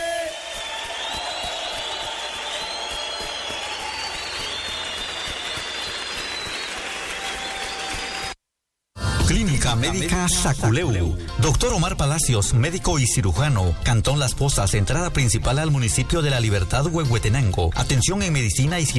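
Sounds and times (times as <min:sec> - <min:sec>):
audience applause: 0:00.2 - 0:08.4
speech: 0:09.3 - 0:18.9.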